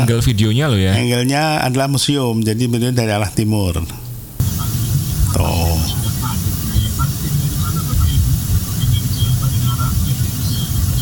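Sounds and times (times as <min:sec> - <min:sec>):
speech: 0:00.0 - 0:04.0
indistinct voices: 0:00.0 - 0:10.4
traffic jam engines and road hiss: 0:04.3 - 0:11.0.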